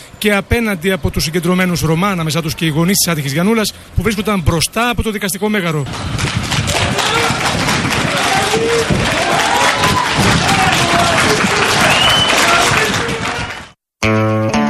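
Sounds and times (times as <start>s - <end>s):
speech: 0.2s - 6.5s
crowd of local residents applauding outside a courthouse: 5.9s - 13.8s
crowd voices: 6.7s - 13.7s.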